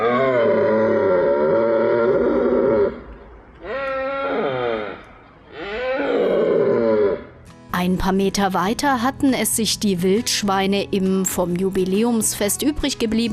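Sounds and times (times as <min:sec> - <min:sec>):
deer stags bellowing during the rut: 0:00.0 - 0:07.4
speech: 0:08.0 - 0:13.3.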